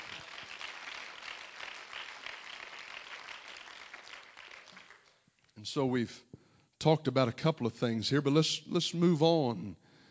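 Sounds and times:
audience clapping hands: 0.0 - 5.4
speech: 5.6 - 9.8.

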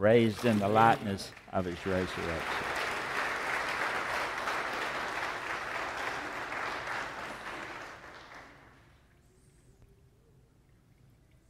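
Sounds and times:
speech: 0.0 - 2.7
audience applause: 0.0 - 8.9.

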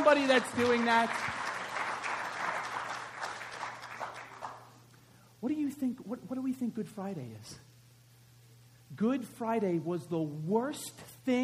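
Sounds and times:
audience clapping: 0.0 - 4.8
speech: 0.1 - 1.4, 5.4 - 7.6, 8.9 - 11.4.

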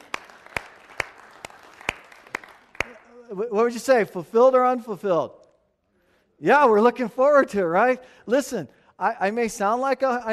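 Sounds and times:
audience applause: 0.0 - 3.0
speech: 3.3 - 5.4, 6.4 - 10.3.

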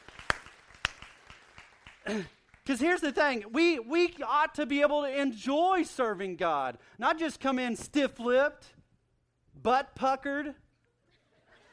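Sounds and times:
scattered audience claps: 0.0 - 2.8
speech: 2.1 - 8.8, 9.6 - 10.6.

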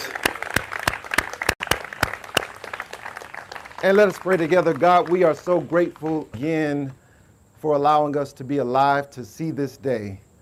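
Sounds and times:
audience clapping: 0.0 - 6.4
speech: 3.8 - 7.0, 7.6 - 10.2.

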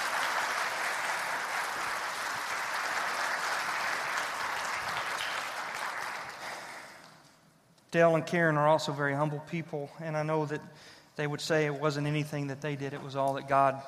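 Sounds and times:
round of applause: 0.0 - 7.2
speech: 7.9 - 13.8.

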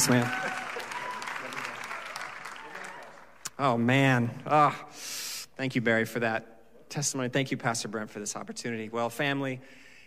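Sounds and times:
speech: 0.0 - 0.4, 3.6 - 9.8
audience clapping to welcome a pastor: 0.0 - 3.9.

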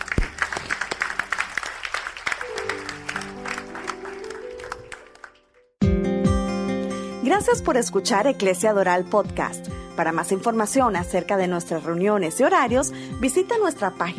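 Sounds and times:
audience applauding: 0.0 - 5.7
music: 0.0 - 14.1
speech: 7.3 - 14.1.

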